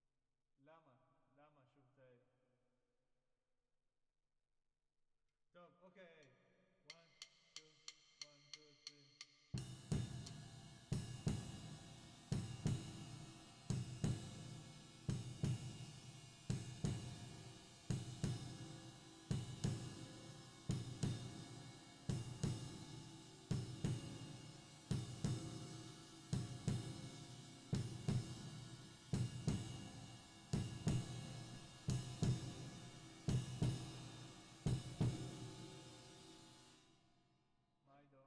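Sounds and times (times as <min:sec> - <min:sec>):
drums with reverb: 0:06.9 - 0:36.9.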